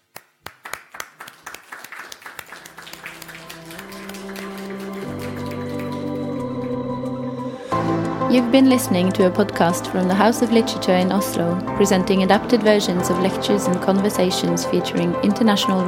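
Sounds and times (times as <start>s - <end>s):
clapping: 0.0s - 6.8s
speech: 8.3s - 15.8s.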